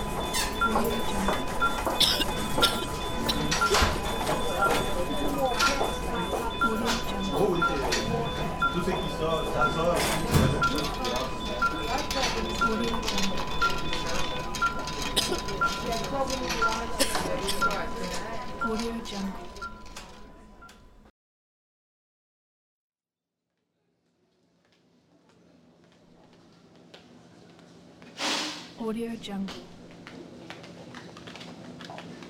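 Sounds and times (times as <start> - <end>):
hospital ambience: 0.0 - 21.1, 24.0 - 32.2.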